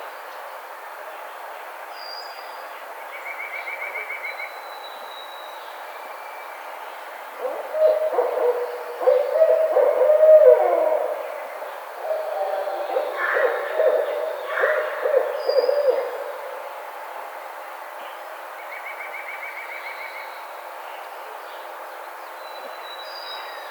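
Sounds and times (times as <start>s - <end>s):
Barred Owl calling: 7.4s - 16.7s.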